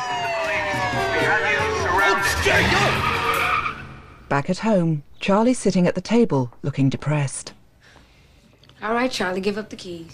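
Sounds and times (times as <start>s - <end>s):
police squad cars pulling up: 0.0s - 4.3s
speech: 4.3s - 7.6s, 8.8s - 10.1s.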